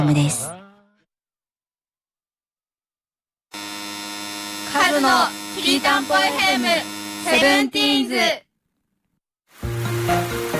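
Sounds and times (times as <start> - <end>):
speech: 0.0 - 0.6, 5.0 - 8.4
rain falling: 9.5 - 10.5.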